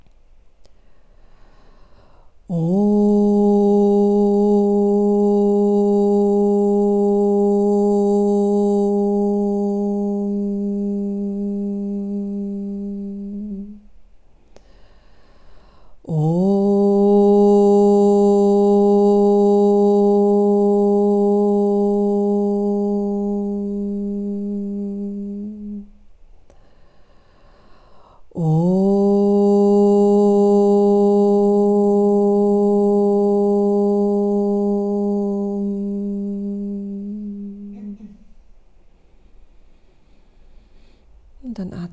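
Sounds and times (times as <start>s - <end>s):
person humming a loud steady low note: 2.5s - 13.9s, 16.0s - 26.0s, 28.3s - 38.4s.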